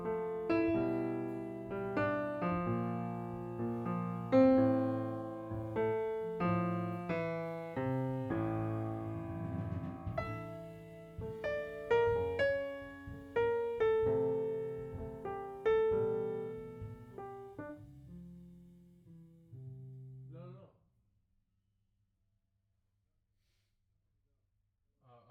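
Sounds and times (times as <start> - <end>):
piano note B: 0.0 - 18.7.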